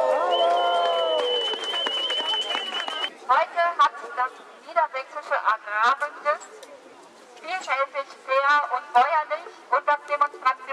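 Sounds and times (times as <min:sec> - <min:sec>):
crowd applauding at outdoor demonstration: 0:00.0 - 0:03.1
whistles: 0:00.2 - 0:03.2
speech: 0:04.3 - 0:06.8, 0:07.4 - 0:10.7.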